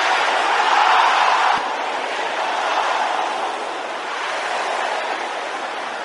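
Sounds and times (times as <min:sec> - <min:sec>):
audience shouting prayers together: 0:00.0 - 0:06.0.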